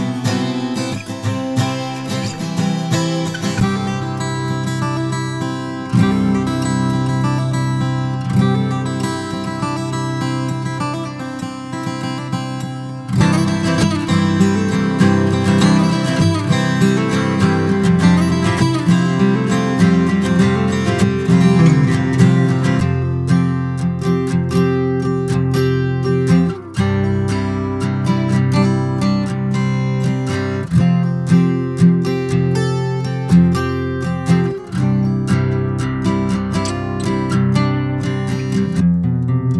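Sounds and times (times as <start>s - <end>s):
acoustic guitar in open C tuning: 0.0s - 39.5s.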